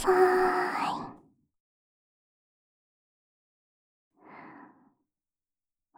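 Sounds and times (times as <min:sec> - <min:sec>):
ASMR sounds in the left ear: 0:00.0 - 0:01.1.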